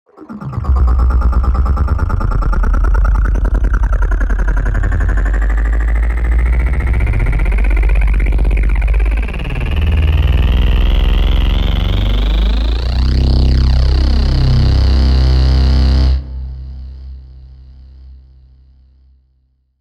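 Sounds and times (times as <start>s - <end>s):
space vehicle accelerating: 0.1s - 16.4s.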